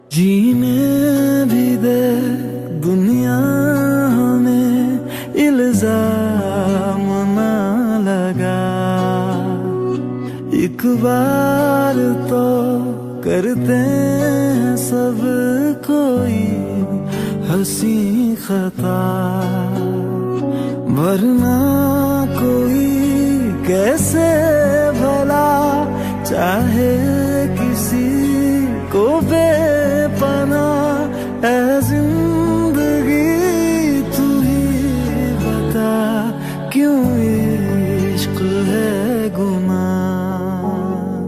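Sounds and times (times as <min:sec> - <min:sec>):
new romantic Hindi song ringtone: 0:00.0 - 0:41.2.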